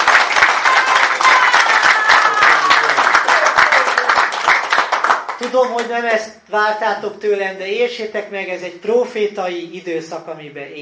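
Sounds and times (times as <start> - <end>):
audience applause: 0.0 - 5.6
speech: 5.4 - 10.8.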